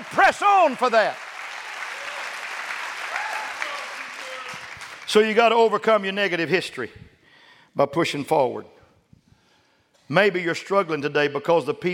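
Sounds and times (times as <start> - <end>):
audience clapping hands: 0.0 - 6.0
speech: 0.2 - 1.2, 5.1 - 7.0, 7.7 - 8.8, 10.1 - 11.9.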